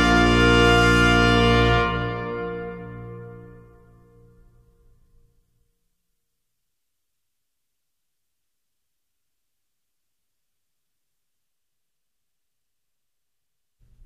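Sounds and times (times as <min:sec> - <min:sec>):
brass ensemble: 0:00.0 - 0:04.2.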